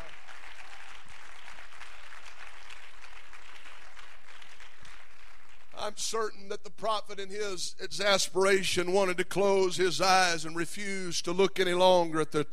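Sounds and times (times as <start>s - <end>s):
audience clapping hands: 0.0s - 6.1s
speech: 5.9s - 12.5s.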